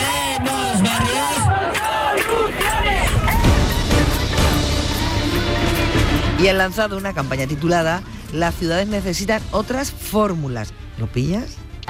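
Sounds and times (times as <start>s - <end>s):
protesters shouting slogans: 0.0s - 5.6s
speech: 6.4s - 11.8s.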